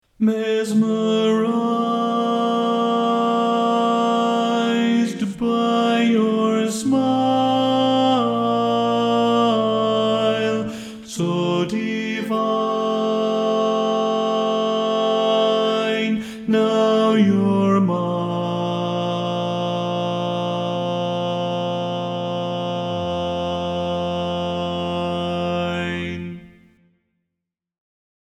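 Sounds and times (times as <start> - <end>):
barbershop baritone singing: 0.2 - 26.5.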